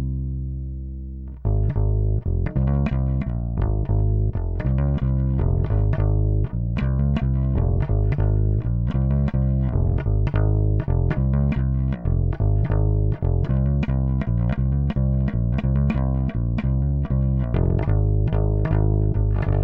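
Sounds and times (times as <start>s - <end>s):
bass: 0.0s - 19.6s.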